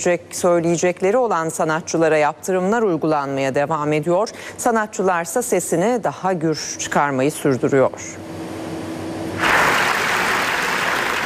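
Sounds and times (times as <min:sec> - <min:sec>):
speech: 0:00.0 - 0:08.3
applause for a film at the Venice festival: 0:09.4 - 0:11.2.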